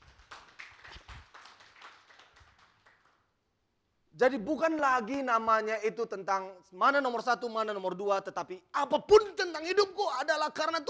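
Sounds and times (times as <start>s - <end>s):
faint congregation clapping in praise of God during a church service: 0.0s - 3.4s
speech: 4.2s - 10.8s.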